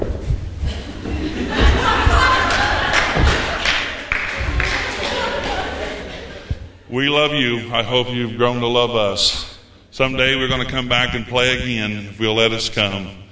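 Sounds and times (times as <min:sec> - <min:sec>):
crowd stomping feet on the floor: 0:00.0 - 0:05.0
people chuckling: 0:00.6 - 0:06.9
speech: 0:07.0 - 0:13.2.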